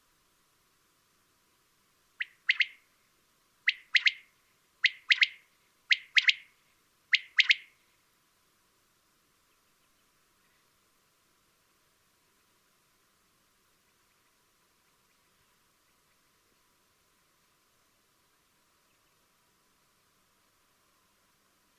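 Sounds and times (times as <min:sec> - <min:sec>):
common quail calling a three-note phrase: 0:02.2 - 0:02.8, 0:03.7 - 0:06.5, 0:07.1 - 0:07.7.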